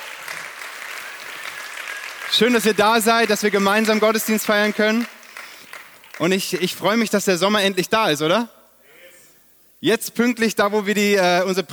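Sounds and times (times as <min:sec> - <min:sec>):
audience applause: 0:00.0 - 0:06.8
speech: 0:02.3 - 0:05.2, 0:06.2 - 0:08.6, 0:09.8 - 0:11.7.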